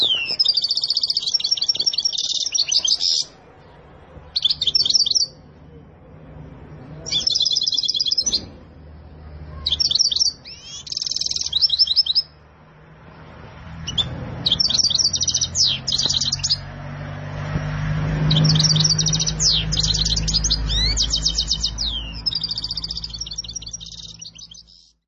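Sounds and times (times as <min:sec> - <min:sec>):
canary trilling and chirping: 0:00.0 - 0:03.4, 0:04.3 - 0:05.5, 0:07.0 - 0:08.6, 0:09.4 - 0:12.4, 0:13.7 - 0:16.8, 0:17.6 - 0:25.0.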